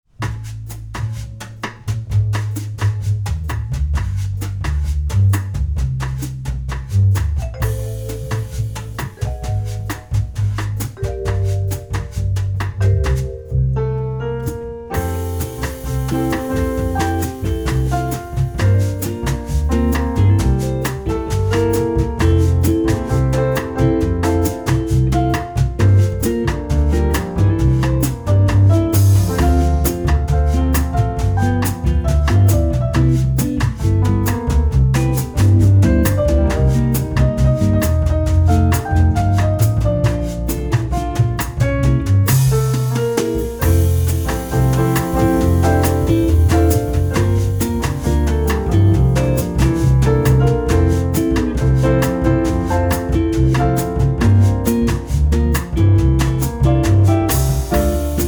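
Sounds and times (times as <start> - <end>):
bossa nova solo: 0.2 - 58.2.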